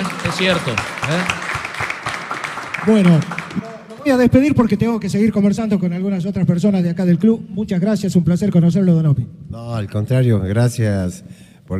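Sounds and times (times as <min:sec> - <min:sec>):
applause: 0:00.0 - 0:04.1
speech: 0:00.4 - 0:01.4, 0:02.8 - 0:11.7.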